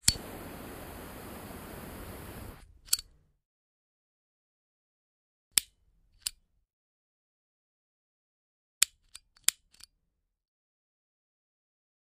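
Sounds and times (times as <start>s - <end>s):
cigarette lighter flicking: 0.0s - 2.6s.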